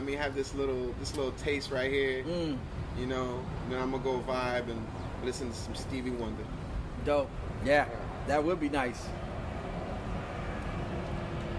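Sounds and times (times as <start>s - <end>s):
speech: 0.1s - 9.2s
airplane passing overhead: 6.4s - 11.5s.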